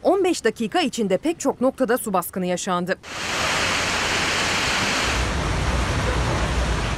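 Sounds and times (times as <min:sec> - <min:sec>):
speech: 0:00.3 - 0:03.9
heavy rain downpour in Istanbul: 0:03.0 - 0:06.9.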